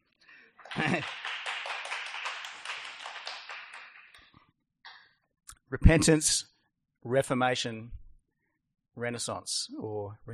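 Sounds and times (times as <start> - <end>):
audience clapping: 0.6 - 5.1
speech: 0.8 - 1.2, 5.7 - 8.0, 9.0 - 10.3.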